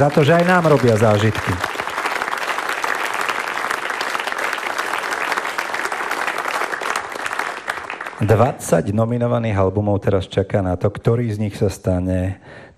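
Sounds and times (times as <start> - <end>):
speech: 0.0 - 1.8, 8.2 - 12.7
audience applauding music makers at a music award ceremony: 0.0 - 8.5.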